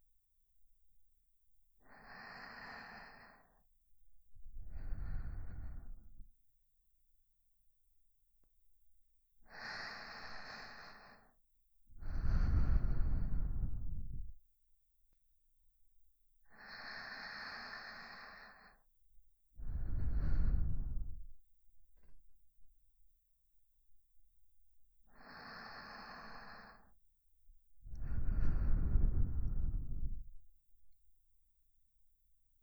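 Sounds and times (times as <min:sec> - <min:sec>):
sleeping breath loop on left channel: 0:01.8 - 0:03.6, 0:04.4 - 0:06.2, 0:09.5 - 0:11.4, 0:12.0 - 0:14.4, 0:16.5 - 0:18.8, 0:19.6 - 0:21.3, 0:25.1 - 0:27.0, 0:27.8 - 0:30.4.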